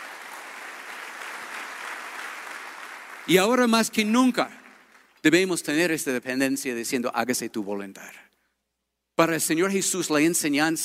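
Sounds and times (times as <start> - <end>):
audience applause: 0.0 - 5.2
speech: 3.3 - 4.6, 5.2 - 8.3, 9.2 - 10.8.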